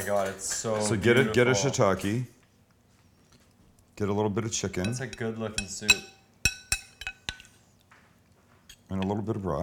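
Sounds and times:
speech: 0:00.0 - 0:02.4, 0:04.0 - 0:06.2, 0:08.9 - 0:09.6
spoon clinking against a ceramic soup bowl: 0:04.7 - 0:07.6.

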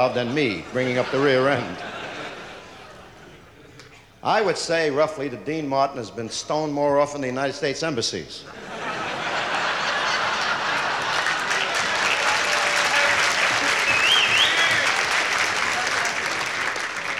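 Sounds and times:
speech: 0:00.0 - 0:02.0, 0:04.2 - 0:08.8
laughter: 0:00.0 - 0:04.6, 0:08.4 - 0:17.1
audience applause: 0:09.3 - 0:17.1
whistles: 0:13.7 - 0:15.0.

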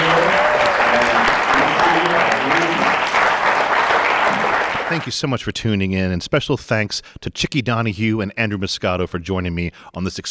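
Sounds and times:
audience applause: 0:00.0 - 0:05.1
speech: 0:05.0 - 0:10.2.

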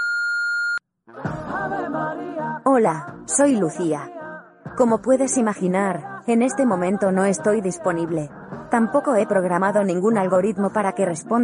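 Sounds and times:
phone call tone before voicemail: 0:00.0 - 0:00.8
speech: 0:01.9 - 0:04.2, 0:04.8 - 0:11.4.

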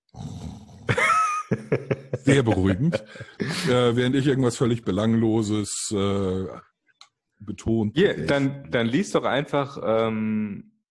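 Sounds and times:
voice imitating snoring with rasping snorts: 0:00.1 - 0:00.9
laughter: 0:00.9 - 0:04.1
speech: 0:01.5 - 0:06.7, 0:07.4 - 0:10.7.

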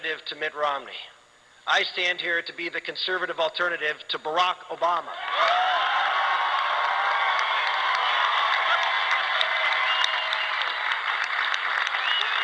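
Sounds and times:
speech: 0:00.0 - 0:05.7
rally crowd applauding: 0:05.2 - 0:12.4.

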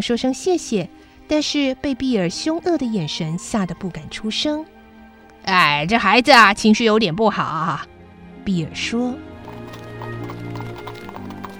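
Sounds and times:
speech: 0:00.0 - 0:04.8, 0:05.5 - 0:09.3
horse hooves clip-clopping as a horse-drawn carriage pulls away: 0:09.4 - 0:11.5.

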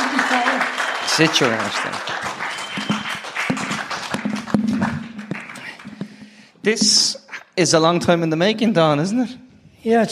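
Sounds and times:
audience applause: 0:00.0 - 0:06.2
speech: 0:01.2 - 0:02.1, 0:06.6 - 0:10.1.

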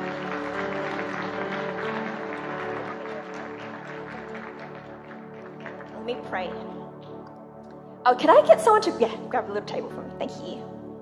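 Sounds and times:
audience applause welcoming a speaker at a conference: 0:00.0 - 0:06.4
speech: 0:06.1 - 0:06.7, 0:08.0 - 0:10.8.

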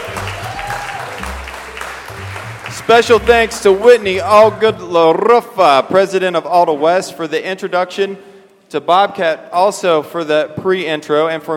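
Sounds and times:
round of applause: 0:00.0 - 0:04.6
speech: 0:02.9 - 0:11.5.

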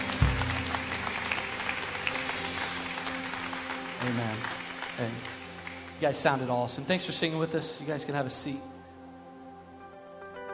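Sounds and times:
audience clapping: 0:00.0 - 0:07.7
speech: 0:04.0 - 0:05.4, 0:06.0 - 0:08.7.

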